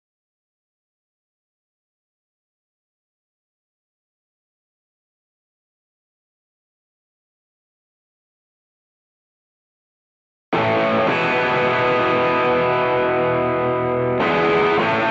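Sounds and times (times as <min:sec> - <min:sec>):
guitar: 0:10.5 - 0:15.0.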